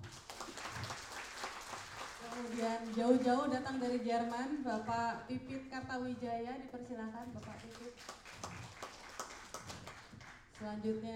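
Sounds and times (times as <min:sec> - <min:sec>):
audience applause: 0:00.0 - 0:03.5, 0:07.6 - 0:10.6
speech: 0:02.4 - 0:08.5, 0:10.6 - 0:11.1.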